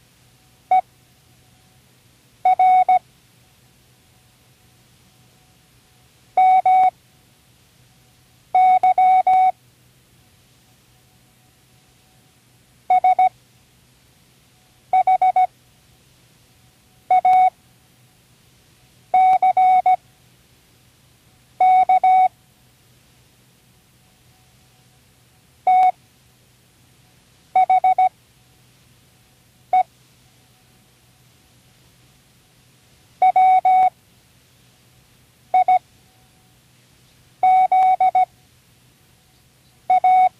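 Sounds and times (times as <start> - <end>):
Morse code: 2.5 - 3.0, 6.4 - 6.9, 8.6 - 9.5, 12.9 - 13.3, 15.0 - 15.5, 17.1 - 17.5, 19.2 - 20.0, 21.6 - 22.3, 25.7 - 26.0, 27.6 - 28.1, 33.2 - 33.9, 35.6 - 35.8, 37.4 - 38.3, 39.9 - 40.3.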